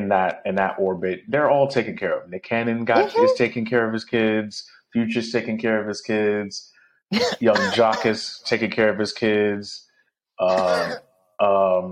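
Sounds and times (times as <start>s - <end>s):
speech: 0.1s - 11.9s
laughter: 2.9s - 3.5s, 7.2s - 8.2s, 10.5s - 11.0s
person coughing: 7.2s - 8.2s, 10.5s - 11.0s.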